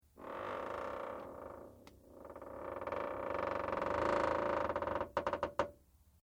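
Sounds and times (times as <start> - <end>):
light metal creak: 0.2 - 5.7.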